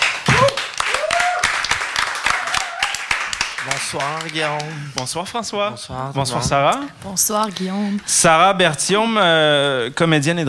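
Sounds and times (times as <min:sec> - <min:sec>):
audience applause: 0:00.0 - 0:05.1
speech: 0:03.6 - 0:10.4.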